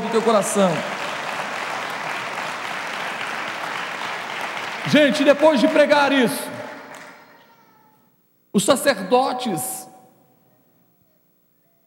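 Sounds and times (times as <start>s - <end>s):
audience applauding: 0.0s - 7.3s
speech: 0.1s - 1.0s, 4.9s - 6.6s, 8.6s - 9.9s.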